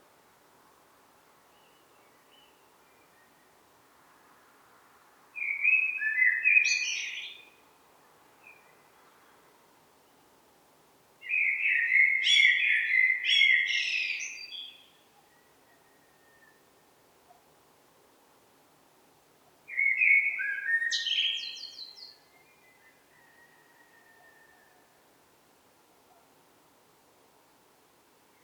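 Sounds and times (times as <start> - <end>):
Eurasian blackbird singing: 5.4 - 7.4, 11.2 - 14.9, 19.7 - 23.5.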